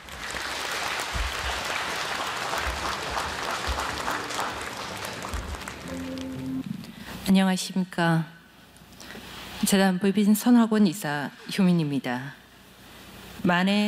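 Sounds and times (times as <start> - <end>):
audience applause: 0.0 - 6.7
speech: 7.3 - 8.3, 9.7 - 12.4, 13.4 - 13.8.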